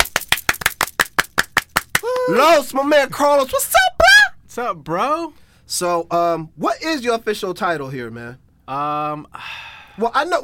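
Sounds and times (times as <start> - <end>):
person clapping: 0.0 - 2.4
speech: 2.3 - 3.9, 4.5 - 10.4.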